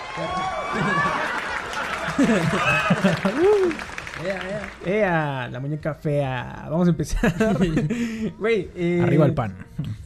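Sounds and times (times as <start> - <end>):
applause sound effect: 0.0 - 5.0
laughter: 0.5 - 3.9, 7.1 - 8.2
speech: 2.2 - 9.9.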